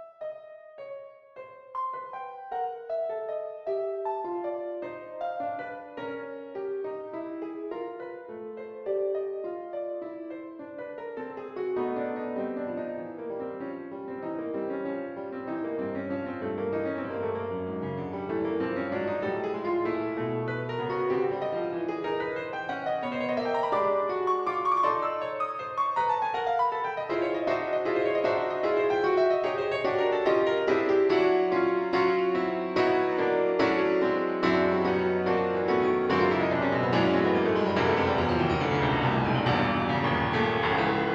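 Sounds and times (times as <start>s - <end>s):
piano piece: 0.0s - 41.1s.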